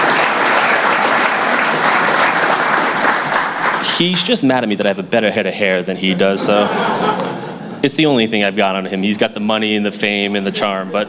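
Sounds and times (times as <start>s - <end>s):
audience applause: 0.0s - 4.4s
speech: 4.0s - 11.0s
laughter: 6.0s - 8.3s, 10.1s - 11.0s.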